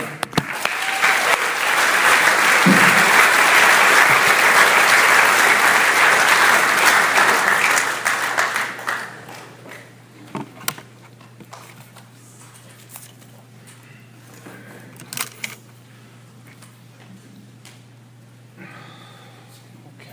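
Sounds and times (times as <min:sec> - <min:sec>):
audience applause: 0:00.0 - 0:10.0.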